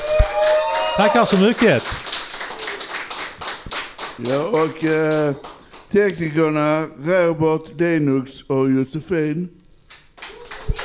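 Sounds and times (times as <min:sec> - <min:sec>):
group applauding: 0:00.0 - 0:07.0, 0:09.8 - 0:10.8
speech: 0:01.0 - 0:02.0, 0:04.2 - 0:09.6.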